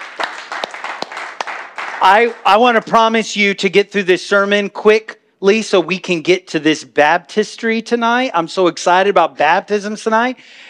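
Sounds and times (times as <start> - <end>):
hands clapping: 0.0 - 3.0
noise: 0.0 - 10.6
speech: 2.0 - 10.6.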